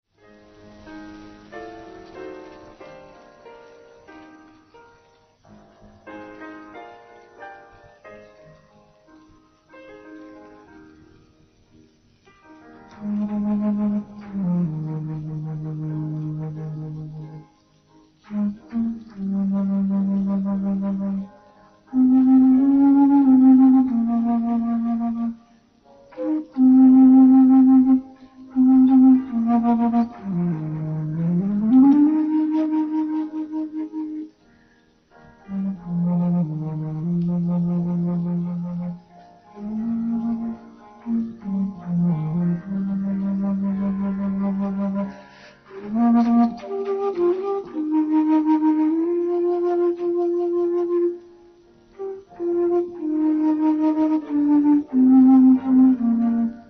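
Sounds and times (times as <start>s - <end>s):
flute: 0.2s - 56.6s.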